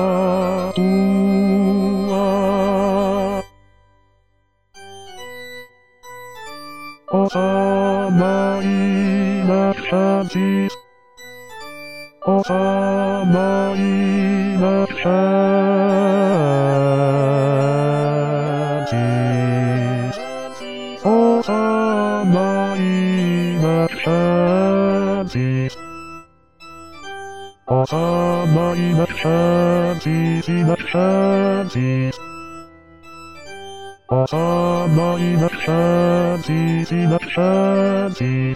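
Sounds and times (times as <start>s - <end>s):
bass voice singing: 0.0s - 3.5s, 7.1s - 10.8s, 12.3s - 25.8s, 27.7s - 32.2s, 34.1s - 38.5s.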